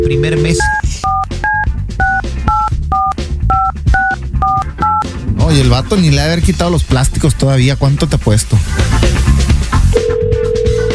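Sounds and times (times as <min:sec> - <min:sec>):
speech: 0:00.0 - 0:01.1, 0:05.5 - 0:10.2
two-tone telephone keypad beeps: 0:00.0 - 0:05.0.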